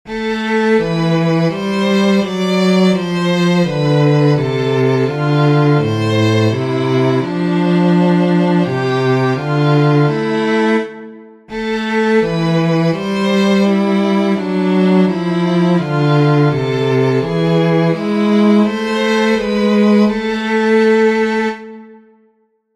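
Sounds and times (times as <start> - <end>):
free counterpoint music: 0.1 - 22.2.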